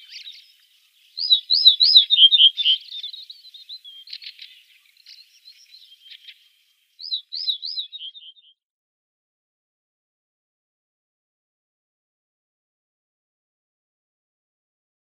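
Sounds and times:
Ortolan bunting song: 0:00.0 - 0:08.6.

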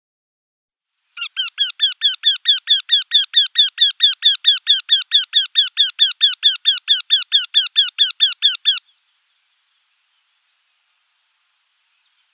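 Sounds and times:
Eurasian wryneck display call: 0:01.2 - 0:09.0.

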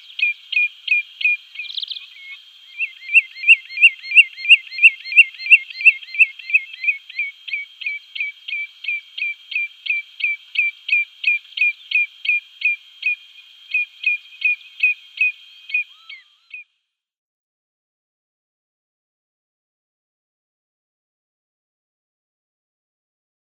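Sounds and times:
common redshank display call: 0:00.0 - 0:16.8.

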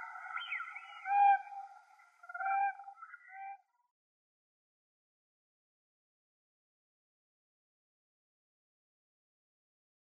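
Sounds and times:
Siberian crane giving drawn-out fluting notes: 0:00.0 - 0:03.6.

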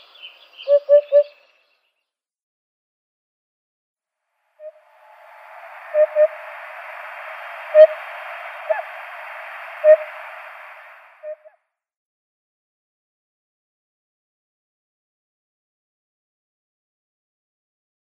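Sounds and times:
Eurasian Hoopoe display call: 0:00.6 - 0:01.3, 0:05.9 - 0:06.4, 0:07.8 - 0:08.0.

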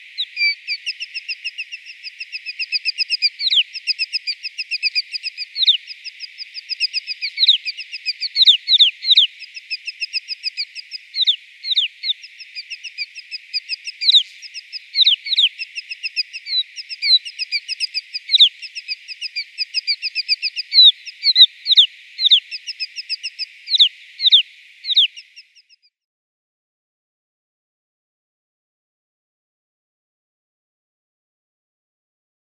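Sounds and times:
snowfinch song: 0:00.0 - 0:25.9.

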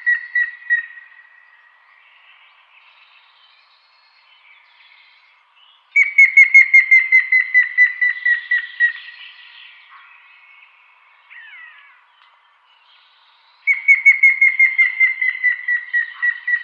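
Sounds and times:
grey-headed woodpecker whistled display notes: 0:06.0 - 0:09.0, 0:13.7 - 0:16.6.

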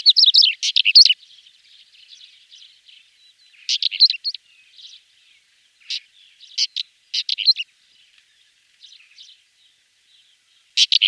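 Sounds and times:
pied wheatear song: 0:00.0 - 0:07.7, 0:10.6 - 0:11.0.

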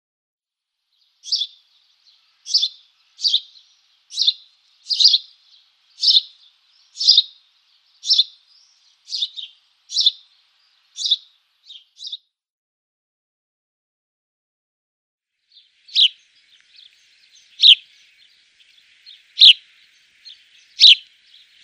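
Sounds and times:
house sparrow song of bright double-noted chirps: 0:00.9 - 0:12.2, 0:15.4 - 0:21.6.

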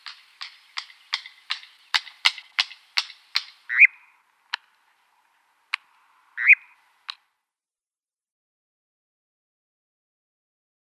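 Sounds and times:
European nightjar call: 0:00.0 - 0:05.0, 0:05.7 - 0:07.2.

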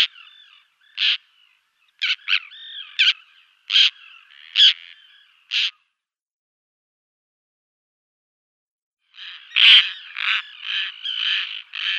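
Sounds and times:
Roseate Tern giving harsh raspy calls: 0:00.0 - 0:05.9, 0:09.1 - 0:11.9.

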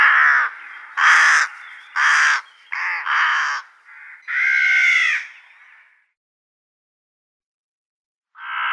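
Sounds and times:
rook cawing: 0:00.0 - 0:06.1.

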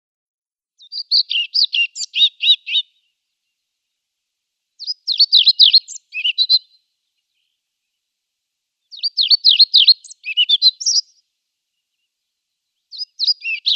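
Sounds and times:
European pied flycatcher singing: 0:00.8 - 0:03.0, 0:04.8 - 0:07.6, 0:08.8 - 0:12.1, 0:12.8 - 0:13.7.

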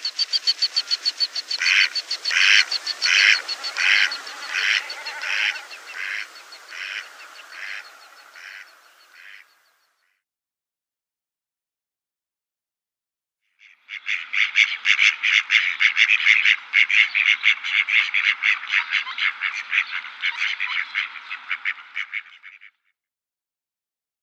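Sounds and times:
male mallard quacking: 0:00.0 - 0:09.6, 0:13.6 - 0:22.9.

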